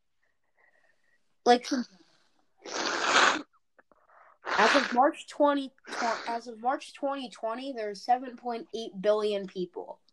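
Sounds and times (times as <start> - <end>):
speech: 1.5 - 2.0, 4.6 - 10.0
nose blowing: 2.6 - 3.6, 4.4 - 5.0, 5.9 - 6.3.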